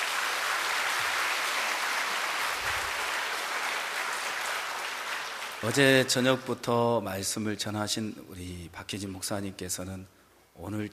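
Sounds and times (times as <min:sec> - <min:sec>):
audience applause for choir: 0:00.0 - 0:06.6
speech: 0:05.6 - 0:10.9.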